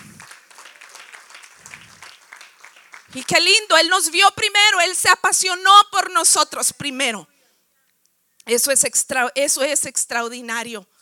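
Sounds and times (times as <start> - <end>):
audience applause: 0.0 - 3.7
speech: 3.1 - 7.3, 8.5 - 10.9.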